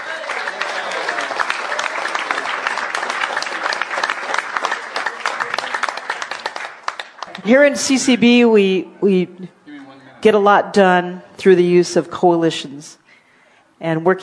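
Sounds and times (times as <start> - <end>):
audience applause: 0.0 - 8.0
speech: 7.4 - 9.6, 10.2 - 13.0, 13.8 - 14.2.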